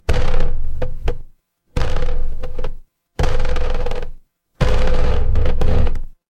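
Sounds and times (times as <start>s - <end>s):
horror creak: 0.0s - 6.1s.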